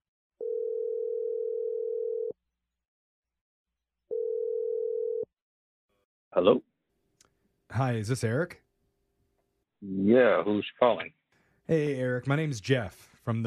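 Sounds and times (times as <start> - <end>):
telephone dial tone: 0.4 - 2.3, 4.1 - 5.3
speech: 6.4 - 6.7, 7.8 - 8.6, 9.8 - 13.4.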